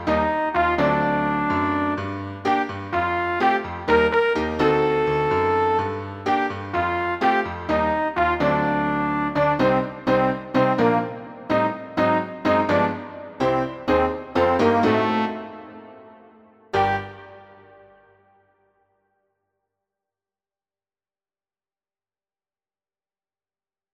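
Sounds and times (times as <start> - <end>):
trumpet: 0.0 - 18.6.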